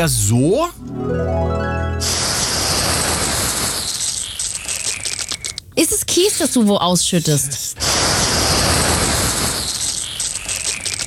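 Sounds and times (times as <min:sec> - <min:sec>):
speech: 0:00.0 - 0:02.2, 0:05.8 - 0:07.8
garden hose spraying water: 0:02.0 - 0:04.3, 0:07.8 - 0:10.1.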